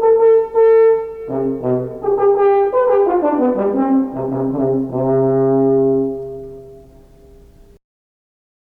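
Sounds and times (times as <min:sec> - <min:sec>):
french horn: 0:00.0 - 0:07.8.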